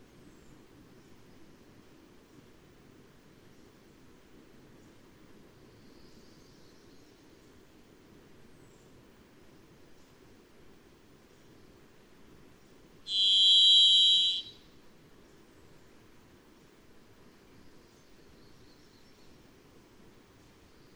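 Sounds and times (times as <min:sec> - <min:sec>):
varied thrush buzzy whistle: 0:13.1 - 0:14.6.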